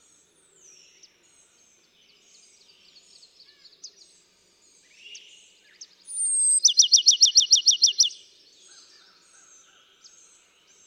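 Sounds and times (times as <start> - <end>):
Bachman's sparrow singing: 6.1 - 8.2.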